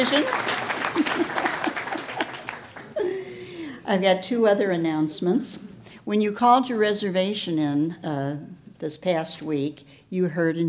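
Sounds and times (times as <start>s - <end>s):
speech: 0.0s - 1.4s, 3.9s - 10.6s
audience applauding and cheering: 0.0s - 3.1s
laughter: 0.7s - 3.3s.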